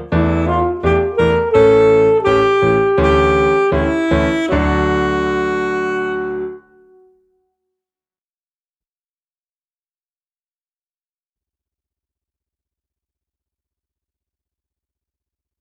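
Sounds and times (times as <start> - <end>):
multiple saxophones: 0.0 - 7.4.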